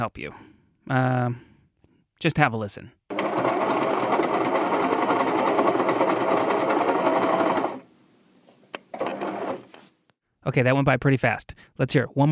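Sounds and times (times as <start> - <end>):
speech: 0.0 - 1.5, 2.2 - 3.5, 10.4 - 12.3
sewing machine running: 3.1 - 7.9, 8.9 - 9.7.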